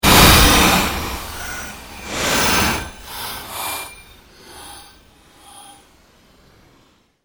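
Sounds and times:
long pulse sweep made by manipulating other sounds: 0:00.0 - 0:06.5.

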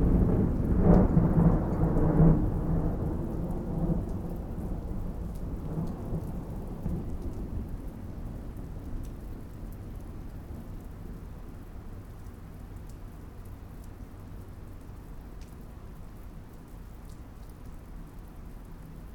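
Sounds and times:
thunderstorm: 0:00.0 - 0:11.2.

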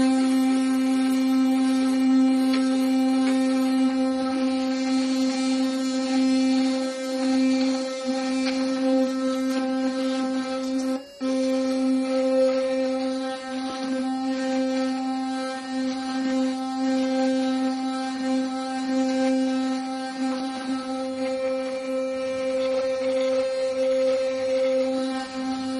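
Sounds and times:
electric toothbrush turned on and running: 0:00.0 - 0:25.7.

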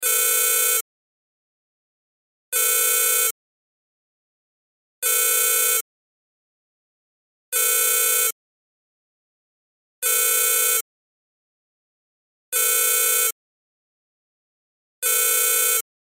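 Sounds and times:
cell phone ringtone: 0:00.0 - 0:00.8, 0:02.6 - 0:03.4, 0:05.0 - 0:05.8, 0:07.6 - 0:08.4, 0:10.0 - 0:10.8, 0:12.6 - 0:13.4, 0:15.0 - 0:15.9.

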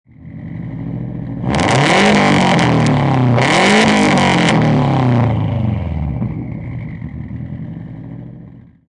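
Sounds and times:
Subaru STI high performance car exhaust double rev: 0:00.1 - 0:08.9.

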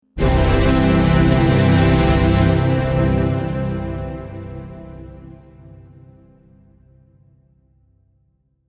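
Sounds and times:
orchestral strings overture in C: 0:00.2 - 0:06.4.

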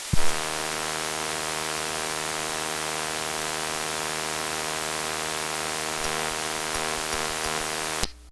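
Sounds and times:
Cobra handheld CB radio static, ham radio white noise: 0:00.2 - 0:08.1.

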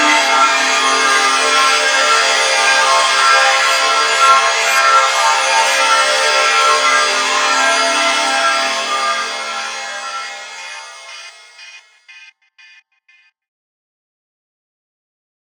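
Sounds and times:
shimmering drone swells: 0:00.0 - 0:12.2.

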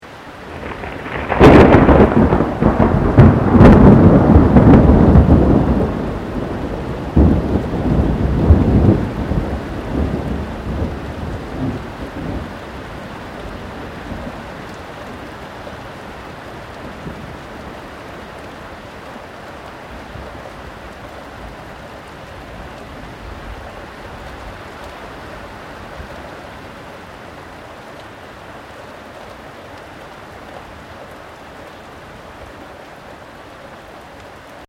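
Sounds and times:
rain: 0:00.0 - 0:34.6
close thunder: 0:00.5 - 0:12.5.

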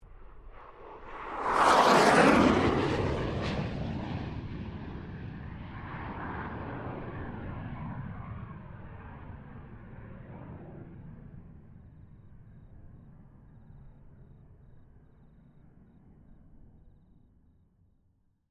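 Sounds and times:
FA-18 Hornet aircraft passing: 0:00.0 - 0:11.5.

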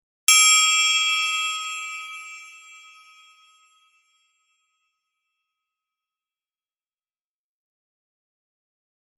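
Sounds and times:
single bell ring with long sustain: 0:00.3 - 0:05.0.

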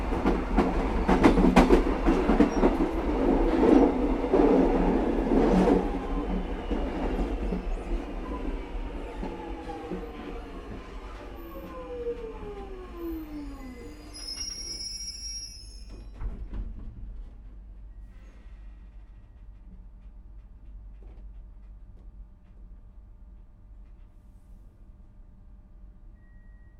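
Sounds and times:
Melbourne Xtrapolis 100 passenger train stopping: 0:00.0 - 0:16.4.

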